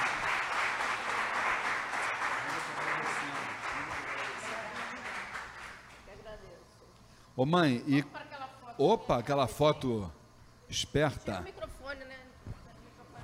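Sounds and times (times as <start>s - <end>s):
audience applause: 0.0s - 6.1s
speech: 7.4s - 8.2s, 8.8s - 11.6s.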